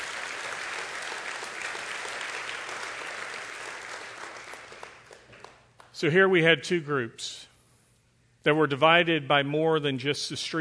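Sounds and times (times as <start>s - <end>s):
audience clapping: 0.0s - 6.0s
speech: 6.0s - 7.4s, 8.4s - 10.5s.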